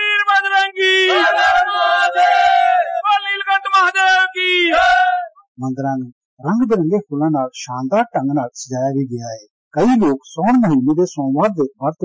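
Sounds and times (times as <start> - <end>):
devotees chanting jaikara slogans in Shiva temples: 0.1 - 5.3
speech: 5.7 - 12.0.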